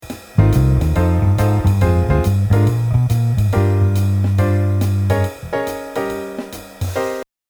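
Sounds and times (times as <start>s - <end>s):
bass E-flat note: 0.4s - 5.6s.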